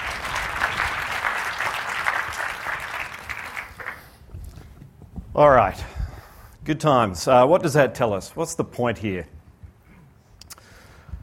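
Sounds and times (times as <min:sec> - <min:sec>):
crowd clapping: 0:00.0 - 0:04.2
speech: 0:05.4 - 0:05.9, 0:06.6 - 0:09.4.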